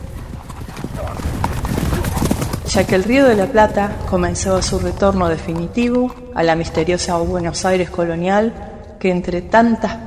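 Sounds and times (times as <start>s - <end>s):
horse neighing: 0.0s - 5.8s
horses galloping with clip-clopping hooves: 0.0s - 9.0s
speech: 2.7s - 10.0s.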